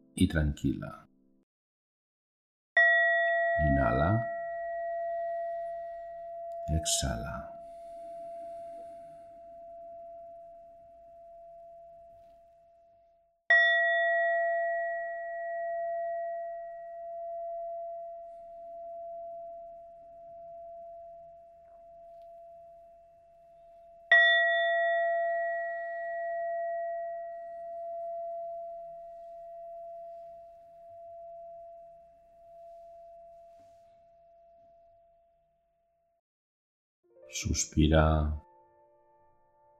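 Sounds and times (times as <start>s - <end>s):
speech: 0.2s - 1.1s, 3.6s - 4.3s, 6.8s - 7.5s, 37.4s - 38.4s
singing bowl struck and ringing: 2.8s - 35.4s.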